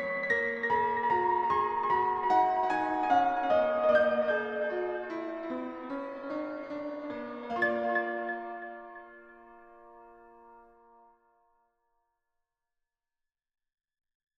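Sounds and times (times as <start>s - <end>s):
microtonal miniature piece: 0.0s - 11.0s.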